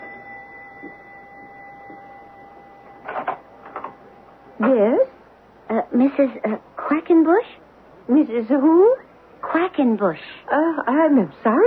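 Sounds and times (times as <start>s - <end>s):
doorbell buzzing: 0.0s - 4.3s
faint steady hum: 0.0s - 11.6s
speech: 4.6s - 5.1s, 5.9s - 11.6s.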